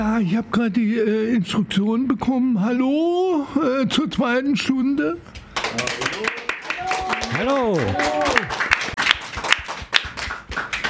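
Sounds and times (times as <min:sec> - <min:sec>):
speech: 0:00.0 - 0:06.4, 0:07.3 - 0:08.6
audience applause: 0:05.6 - 0:10.8.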